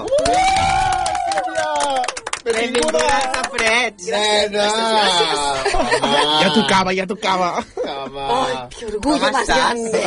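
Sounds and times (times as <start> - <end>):
crowd cheering and whooping: 0.0 - 2.2
crowd applauding: 0.0 - 3.9
speech: 2.5 - 10.0
laughter: 4.9 - 10.0.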